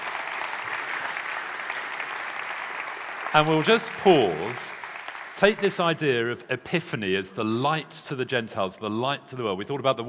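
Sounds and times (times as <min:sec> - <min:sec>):
audience applause: 0:00.0 - 0:06.2
speech: 0:03.3 - 0:04.8, 0:05.4 - 0:10.0.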